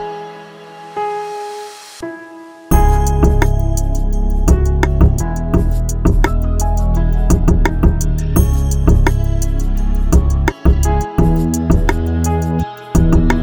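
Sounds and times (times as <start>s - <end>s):
trap type beat: 2.7s - 13.4s.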